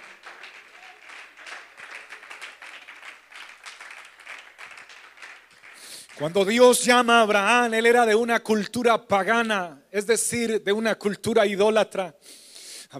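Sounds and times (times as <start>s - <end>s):
audience applause: 0.0s - 6.2s
speech: 6.2s - 12.9s.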